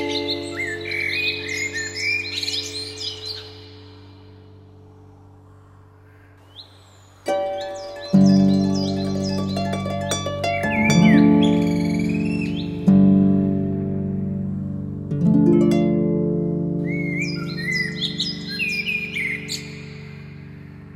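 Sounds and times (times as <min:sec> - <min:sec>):
classic harp playing in G major, C minor and D minor: 0:00.0 - 0:03.0, 0:07.3 - 0:20.8.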